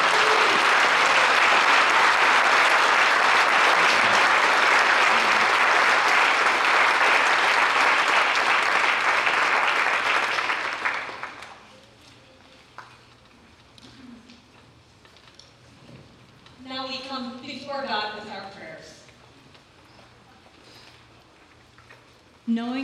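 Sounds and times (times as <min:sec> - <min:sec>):
audience applause: 0:00.0 - 0:11.7.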